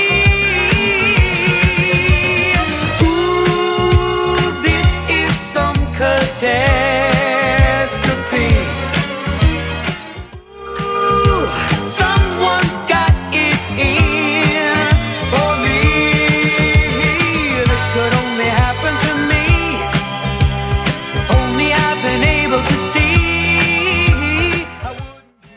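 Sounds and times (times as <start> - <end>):
seventies-style drum machine beat: 0.0 - 9.6, 10.4 - 25.1.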